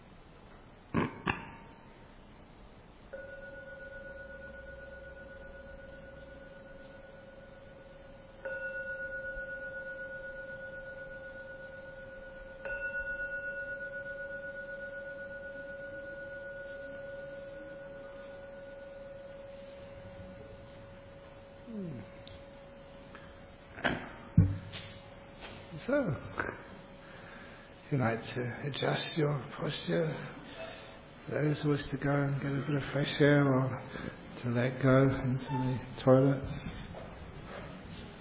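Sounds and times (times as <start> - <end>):
meditation gong ringing: 3.1 - 21.8
speech: 25.9 - 26.5, 27.9 - 30.4, 31.3 - 36.7.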